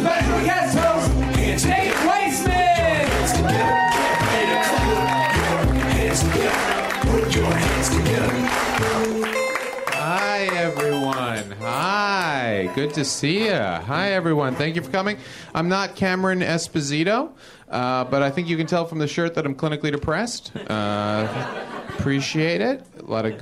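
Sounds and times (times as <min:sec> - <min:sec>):
large crowd applauding and cheering: 0:00.0 - 0:14.9
music: 0:00.0 - 0:16.9
person whooping: 0:02.3 - 0:05.8
speech: 0:12.8 - 0:23.4
laughter: 0:17.7 - 0:19.3, 0:20.4 - 0:23.4.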